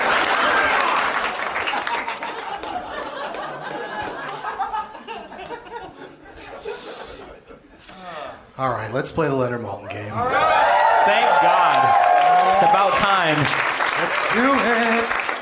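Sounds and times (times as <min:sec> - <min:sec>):
audience applause: 0:00.0 - 0:04.8, 0:10.2 - 0:15.4
audience chuckles and laughter: 0:00.0 - 0:07.8
speech: 0:08.6 - 0:15.2.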